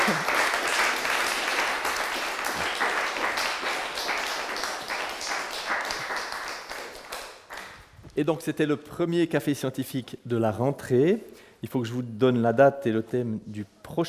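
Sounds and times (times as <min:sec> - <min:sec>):
audience applause: 0:00.0 - 0:07.9
speech: 0:08.2 - 0:14.0.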